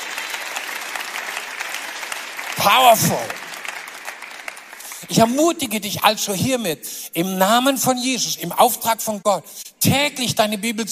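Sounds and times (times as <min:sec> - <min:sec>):
audience applause: 0:00.0 - 0:05.1
speech: 0:02.6 - 0:03.4, 0:05.1 - 0:10.8.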